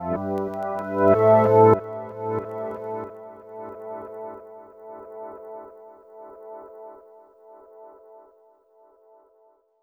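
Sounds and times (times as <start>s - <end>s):
hip-hop and R&B synth: 0.0s - 4.6s.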